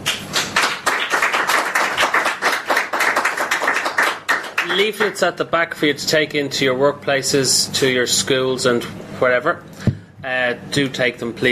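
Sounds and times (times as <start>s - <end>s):
audience applause: 0.0s - 5.2s
speech: 4.7s - 11.5s.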